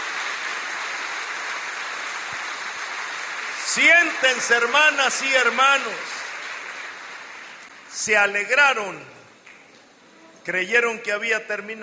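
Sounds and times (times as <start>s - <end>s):
audience applauding: 0.0s - 7.9s
speech: 3.8s - 6.2s, 8.0s - 9.2s, 10.4s - 11.8s.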